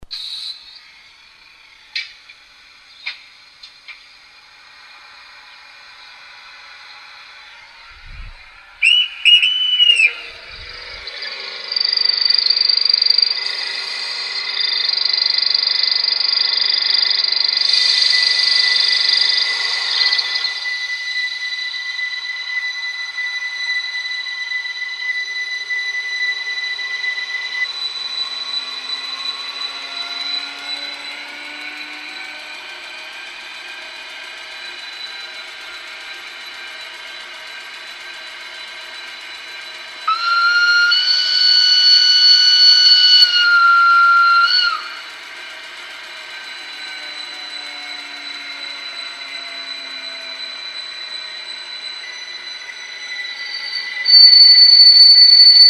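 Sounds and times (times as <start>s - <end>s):
RhB ABe8 Allegra electric train: 0.0s - 55.6s.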